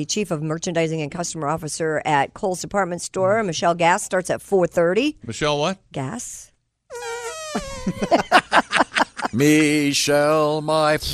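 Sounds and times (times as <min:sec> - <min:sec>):
speech: 0:00.0 - 0:08.5, 0:09.3 - 0:11.1
two people making fart noises with mouths: 0:06.9 - 0:08.1
laughter: 0:07.5 - 0:10.6.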